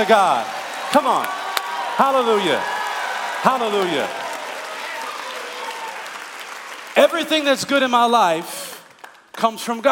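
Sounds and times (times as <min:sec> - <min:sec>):
speech: 0:00.0 - 0:01.4, 0:02.0 - 0:02.8, 0:03.4 - 0:04.2, 0:07.0 - 0:08.7, 0:09.4 - 0:09.8
audience cheering: 0:00.0 - 0:07.6
audience applauding: 0:00.0 - 0:09.8.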